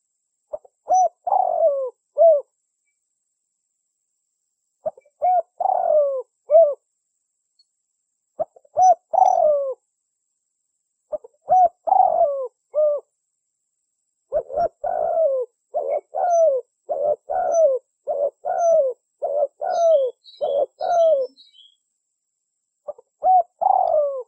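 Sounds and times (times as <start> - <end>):
Spotted Dove cooing as a lure call: 0.0 - 2.5, 4.8 - 6.8, 8.4 - 9.8, 11.1 - 13.1, 14.3 - 21.8, 22.9 - 24.2.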